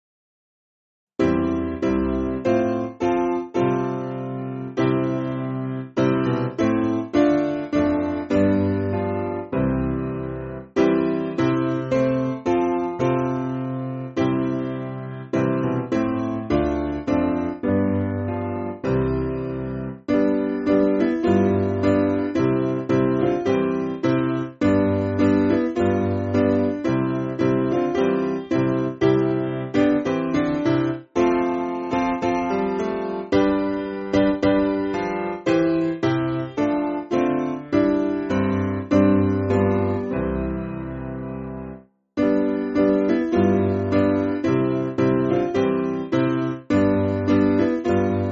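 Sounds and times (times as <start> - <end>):
church piano music: 1.2 - 48.2.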